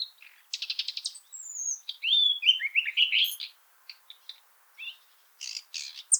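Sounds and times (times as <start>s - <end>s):
common nightingale singing chirps, whistles and clicks: 0.9s - 3.5s.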